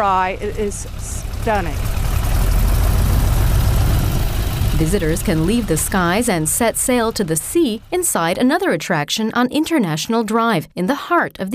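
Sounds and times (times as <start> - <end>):
speech: 0.0 - 2.0, 4.8 - 11.5
open cockpit propeller aircraft engine droning: 0.0 - 8.6
rushing air: 1.2 - 8.0.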